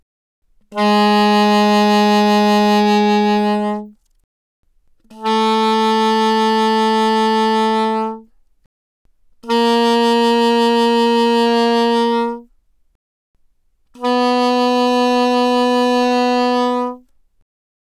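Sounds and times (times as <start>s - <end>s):
soprano saxophone with vibrato, fortissimo, A-flat 3 and B3: 0.7s - 4.0s, 5.1s - 8.3s, 9.4s - 12.5s, 14.0s - 17.1s.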